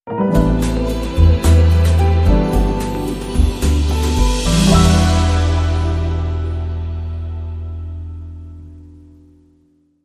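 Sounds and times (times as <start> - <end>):
long musical sting: 1.0 - 8.8.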